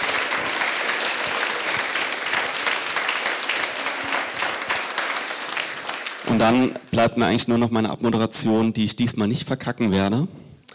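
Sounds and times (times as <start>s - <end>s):
audience applause: 0.0s - 6.8s
speech: 6.4s - 10.5s.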